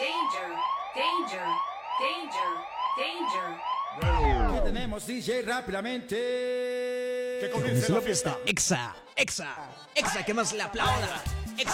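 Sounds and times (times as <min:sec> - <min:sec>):
electronic siren wailing: 0:00.0 - 0:05.0, 0:07.6 - 0:08.5
speech: 0:01.0 - 0:11.7.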